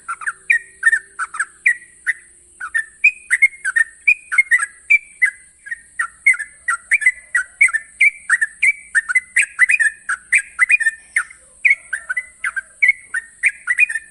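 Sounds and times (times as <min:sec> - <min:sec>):
Yellow-vented Bulbul singing long-trill master song: 0:00.0 - 0:14.0.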